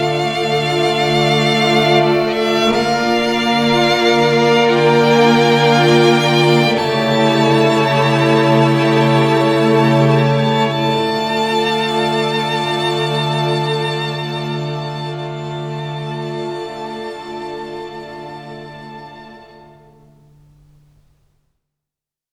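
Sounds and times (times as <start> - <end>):
sad solo violin: 0.0 - 20.0.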